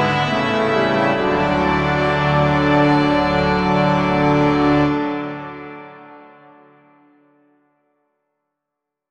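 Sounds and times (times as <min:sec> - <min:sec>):
full ensemble playing: 0:00.0 - 0:06.1.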